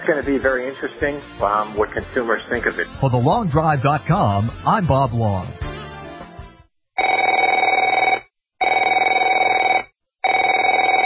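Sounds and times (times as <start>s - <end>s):
speech: 0.0s - 5.6s
telephone ringing: 7.0s - 11.0s.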